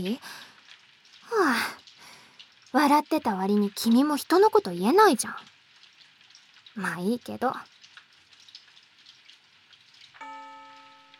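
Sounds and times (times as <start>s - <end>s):
speech: 0.0s - 0.5s, 2.7s - 5.5s, 6.8s - 7.7s
steady rain: 0.0s - 11.1s
school chime ringing: 10.2s - 11.1s.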